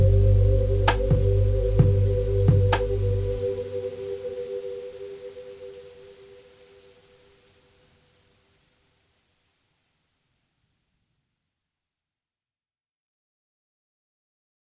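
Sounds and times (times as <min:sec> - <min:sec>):
rain: 0:00.0 - 0:11.5.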